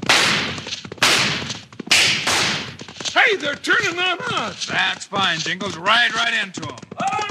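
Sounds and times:
gunshots fired over heads: 0:00.0 - 0:03.0
speech: 0:03.3 - 0:07.2.

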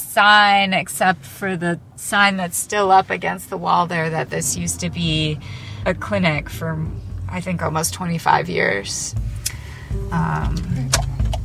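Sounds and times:
car engine starting and idling: 0:00.0 - 0:11.4
speech: 0:00.2 - 0:11.1
rattling and clicking of a car being started: 0:10.4 - 0:11.4.

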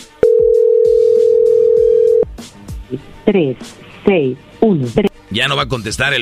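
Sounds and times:
telephone ringing tone: 0:00.2 - 0:02.2
speech: 0:02.9 - 0:06.2.

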